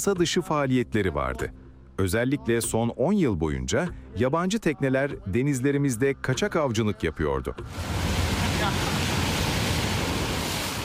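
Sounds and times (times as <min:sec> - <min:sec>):
speech: 0:00.0 - 0:09.0
waves washing along Lido beach in Somalia: 0:07.7 - 0:10.8.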